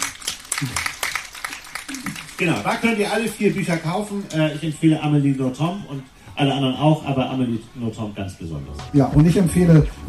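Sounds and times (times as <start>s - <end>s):
small audience applause: 0.0s - 4.6s
speech: 0.6s - 0.9s, 2.4s - 10.0s.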